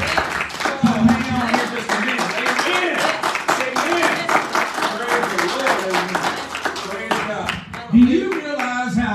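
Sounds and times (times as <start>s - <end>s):
audience hand clapping: 0.0s - 9.0s.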